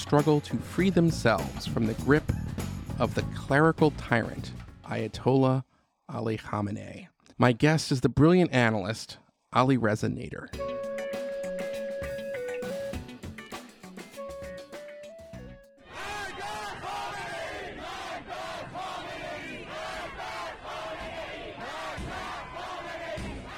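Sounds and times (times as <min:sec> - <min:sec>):
speech: 0:00.0 - 0:02.4, 0:03.0 - 0:10.8
large crowd chanting at midnight in downtown Tehran: 0:15.8 - 0:23.5.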